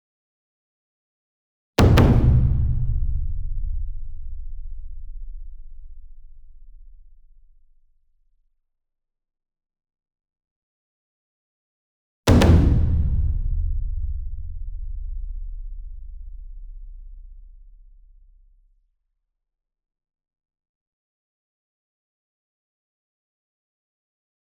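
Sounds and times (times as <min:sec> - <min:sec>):
single 60 inch taiko drum hit with double hard beater medium: 0:01.8 - 0:04.6, 0:12.3 - 0:16.9.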